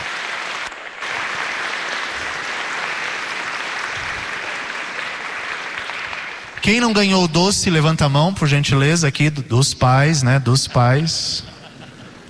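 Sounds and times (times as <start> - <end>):
applause: 0.0 - 8.3
speech: 6.6 - 11.5
laughter: 10.1 - 12.2.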